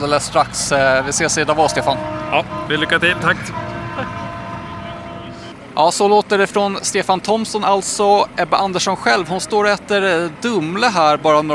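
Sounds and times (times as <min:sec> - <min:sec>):
speech: 0:00.0 - 0:04.1, 0:05.8 - 0:11.5
bus horn honking as team departs: 0:00.0 - 0:05.7, 0:08.8 - 0:10.8.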